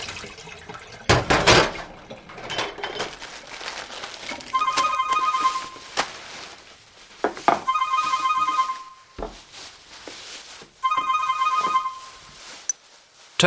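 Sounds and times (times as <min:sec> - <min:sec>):
clattering and rustling: 0:01.1 - 0:13.4
telephone ringing: 0:04.5 - 0:05.9, 0:07.6 - 0:09.2, 0:10.8 - 0:12.4.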